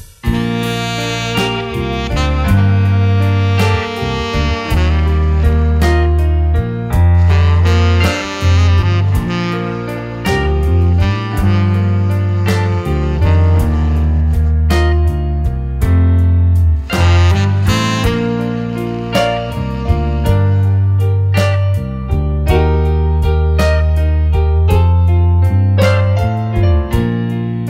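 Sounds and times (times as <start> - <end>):
background music pads: 0.3 - 27.6.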